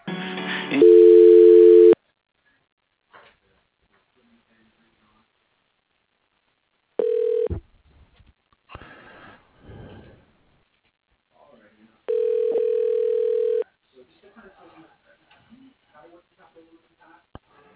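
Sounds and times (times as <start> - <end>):
telephone ringback tone during transfer to an office extension: 0.8 - 2.0, 7.0 - 7.5, 12.1 - 13.6.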